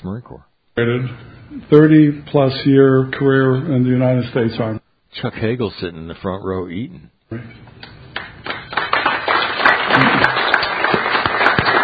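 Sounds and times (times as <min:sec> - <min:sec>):
speech: 0:00.0 - 0:07.9
audience applause: 0:08.2 - 0:11.8.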